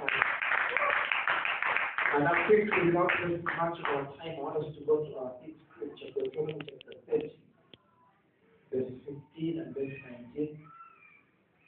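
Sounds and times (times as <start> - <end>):
audience clapping for the minister: 0.0 - 4.1
speech: 2.1 - 7.4, 9.4 - 10.7.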